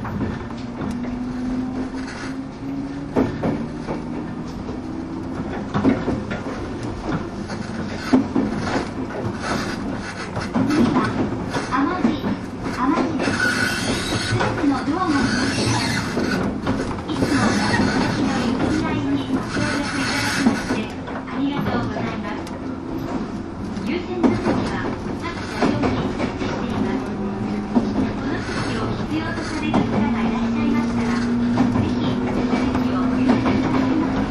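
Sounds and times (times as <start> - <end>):
Bantan Line train rumbling: 0.0 - 34.3.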